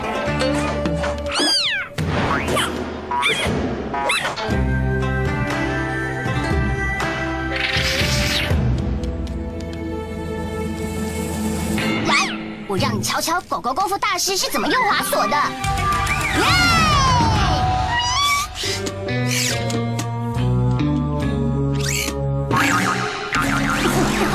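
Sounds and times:
steady music: 0.0 - 24.3
cat meowing: 1.3 - 2.0
speech: 13.1 - 16.7.

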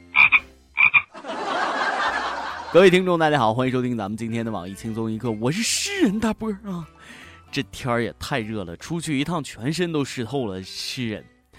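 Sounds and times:
toad croaking: 0.0 - 1.1
laughter: 1.1 - 2.9
speech: 2.7 - 11.3.

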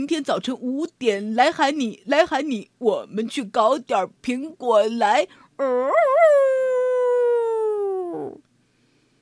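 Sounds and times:
speech: 0.0 - 6.6
wolf howling: 5.7 - 8.4.

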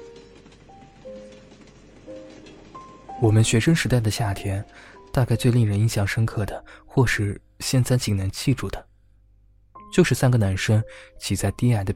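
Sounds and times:
green train rolling along rails: 0.0 - 6.6
speech: 3.2 - 8.9, 9.9 - 11.9.

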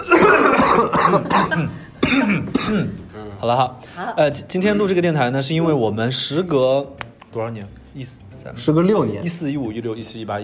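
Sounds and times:
several people coughing together on a countdown: 0.0 - 3.3
speech: 0.8 - 10.4.

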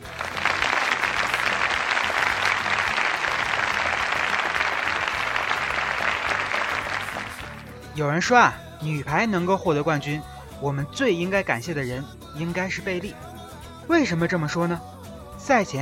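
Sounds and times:
crowd applause: 0.0 - 7.7
speech: 8.0 - 13.2, 13.9 - 15.8.

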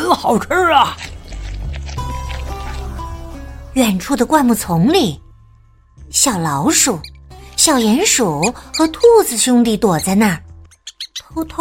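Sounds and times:
speech: 0.3 - 1.1, 3.8 - 5.2, 6.1 - 10.5, 11.3 - 11.6
bear licking honey: 0.4 - 3.5.

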